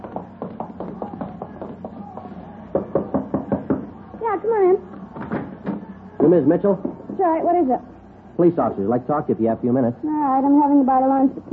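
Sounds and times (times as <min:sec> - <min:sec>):
knocking on a wooden door: 0:00.0 - 0:03.9
faint hum: 0:00.0 - 0:11.5
speech: 0:06.2 - 0:11.5.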